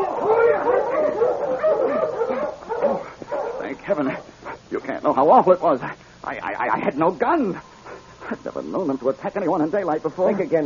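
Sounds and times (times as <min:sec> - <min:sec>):
pack of husky dogs barking and yelping: 0:00.0 - 0:04.7, 0:07.6 - 0:08.4
speech: 0:03.9 - 0:07.7, 0:08.3 - 0:10.6.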